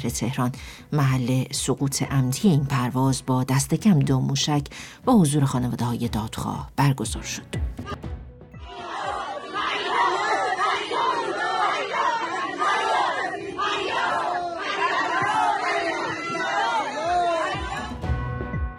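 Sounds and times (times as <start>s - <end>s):
speech: 0.0s - 8.1s
crowd chanting at memorial gathering: 7.8s - 18.4s.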